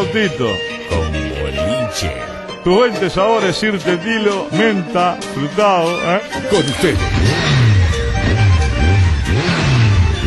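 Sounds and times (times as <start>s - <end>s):
speech: 0.0s - 1.0s, 1.9s - 7.6s
motorcycle engine revving: 6.5s - 10.2s.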